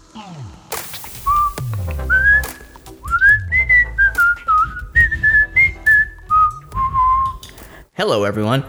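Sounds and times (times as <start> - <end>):
person whistling: 1.2 - 7.5
speech: 8.0 - 8.6.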